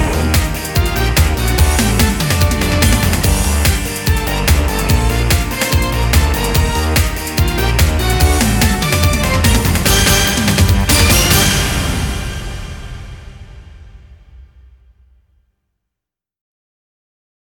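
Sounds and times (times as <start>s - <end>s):
flugelhorn instrumental: 0.0s - 13.9s.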